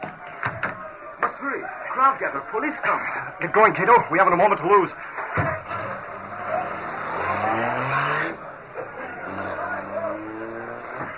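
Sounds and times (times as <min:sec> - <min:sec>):
laughter: 0:00.0 - 0:11.1
road noise: 0:00.0 - 0:11.1
speech: 0:01.5 - 0:05.5
car engine revving as car speeds off: 0:04.9 - 0:11.1
tire squeal: 0:05.6 - 0:11.1.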